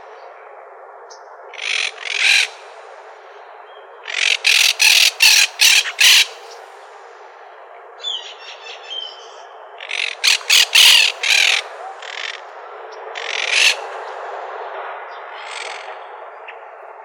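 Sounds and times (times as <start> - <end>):
monk parakeet squawks: 1.6 - 2.6, 4.1 - 6.5, 9.8 - 12.4, 13.2 - 13.8, 15.4 - 15.9.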